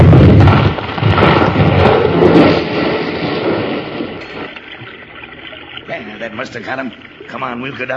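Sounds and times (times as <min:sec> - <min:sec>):
heavy wooden beam crashing down: 0:00.0 - 0:05.3
rumbling clattering debris: 0:00.0 - 0:05.8
speech: 0:06.5 - 0:07.9.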